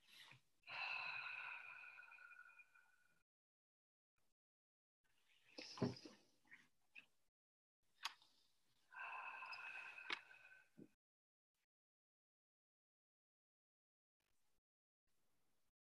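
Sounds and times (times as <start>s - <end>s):
group breathing deeply together at a meeting: 0.7s - 3.1s, 8.9s - 10.8s.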